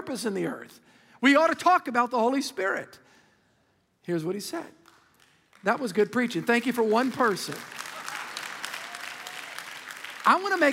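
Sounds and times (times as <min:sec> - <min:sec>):
speech: 0:00.0 - 0:03.0, 0:04.0 - 0:04.8, 0:05.6 - 0:07.8, 0:10.3 - 0:10.7
audience clapping: 0:04.8 - 0:10.7.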